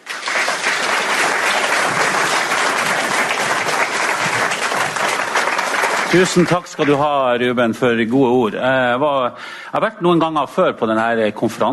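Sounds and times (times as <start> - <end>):
audience applause: 0.0 - 7.1
speech: 6.1 - 11.7.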